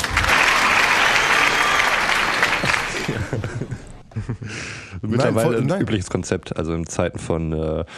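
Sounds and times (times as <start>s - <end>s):
applause sound effect from a crowd: 0.0s - 3.9s
laughter: 1.6s - 5.6s
speech: 5.1s - 7.9s.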